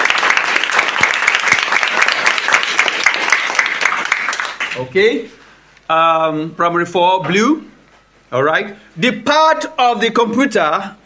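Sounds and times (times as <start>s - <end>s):
group clapping in an indoor room: 0.0s - 4.9s
speech: 4.8s - 7.7s, 8.3s - 11.0s.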